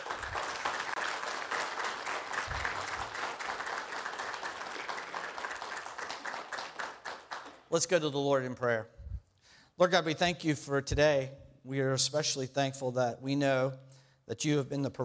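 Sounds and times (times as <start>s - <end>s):
audience applause: 0.0s - 7.7s
speech: 7.7s - 9.0s, 9.8s - 15.0s.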